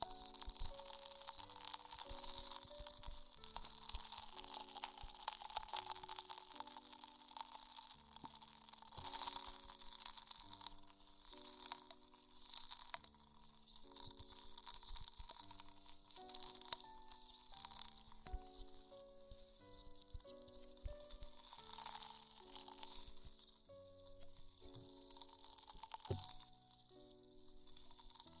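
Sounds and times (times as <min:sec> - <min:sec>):
crisp rustling and wet crackling of ear exploration: 0:00.0 - 0:28.3
soft low melody: 0:00.0 - 0:28.3.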